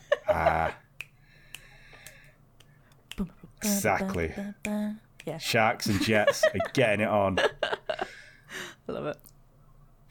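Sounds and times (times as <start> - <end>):
laughter: 0.0 - 0.8, 5.9 - 8.1
finger snapping: 1.0 - 3.2
speech: 3.2 - 7.8, 9.0 - 9.2.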